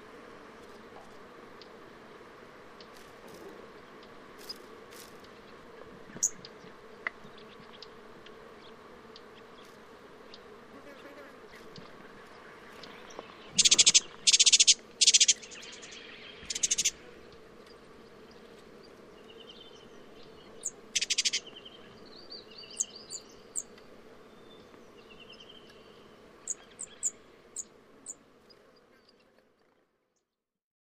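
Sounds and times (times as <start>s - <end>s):
spotted scrubwren ticking calls: 13.6s - 17.0s, 20.6s - 21.5s.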